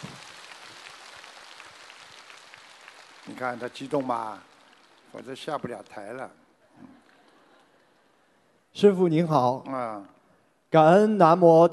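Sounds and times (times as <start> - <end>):
audience applause: 0.0 - 8.1
speech: 3.3 - 4.5, 5.1 - 6.4, 8.8 - 11.7.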